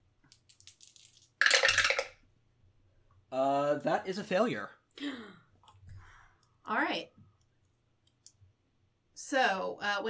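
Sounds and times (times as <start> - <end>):
dice being rolled: 0.3 - 2.2
speech: 3.4 - 5.3, 6.7 - 7.1, 9.3 - 10.0.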